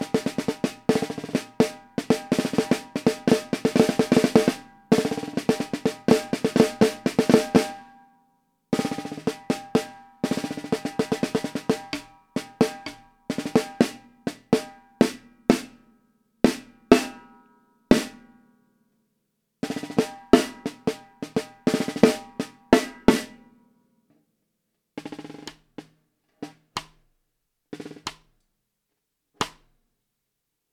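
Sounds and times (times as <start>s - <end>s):
Tama LMB1465 drum: 0.0s - 7.8s, 8.8s - 15.7s, 19.7s - 23.4s, 25.0s - 27.2s, 27.8s - 28.4s, 29.4s - 29.7s.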